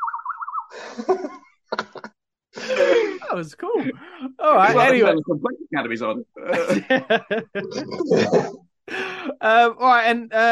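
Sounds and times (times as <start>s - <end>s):
bird noise sound effect: 0.0s - 0.8s
speech: 0.7s - 1.4s, 3.3s - 8.6s, 9.4s - 10.4s
laughter: 0.8s - 5.5s, 6.4s - 9.3s.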